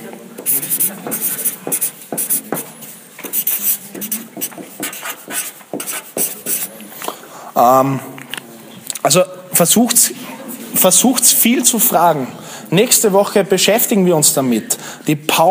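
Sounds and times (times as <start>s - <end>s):
speech: 0.4s - 1.9s, 7.6s - 8.1s, 9.0s - 10.2s, 10.8s - 15.4s
marker writing a name on a board: 0.4s - 6.8s.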